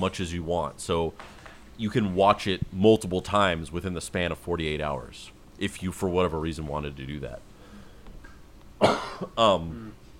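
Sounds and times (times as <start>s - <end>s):
speech: 0.0s - 7.5s, 8.8s - 10.0s
person coughing with something caught in the throat: 8.8s - 10.0s.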